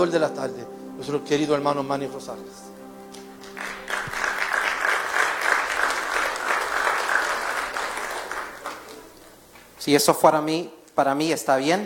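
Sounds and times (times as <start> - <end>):
speech: 0.0 - 2.7, 9.8 - 11.8
audience applauding: 3.4 - 9.7.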